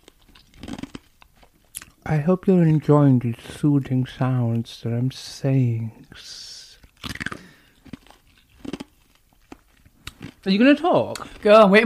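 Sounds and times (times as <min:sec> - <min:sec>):
crunching and chewing an ice cube: 0:00.1 - 0:01.9, 0:06.9 - 0:10.4
speech: 0:02.1 - 0:07.2, 0:10.4 - 0:11.8.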